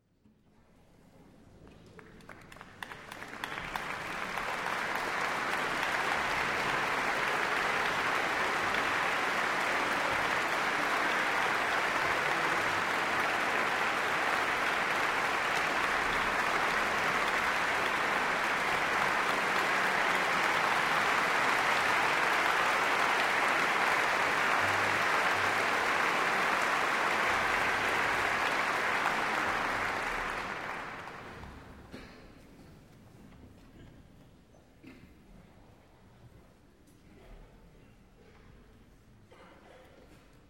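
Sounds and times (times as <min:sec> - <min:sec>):
applause: 0:01.6 - 0:32.2.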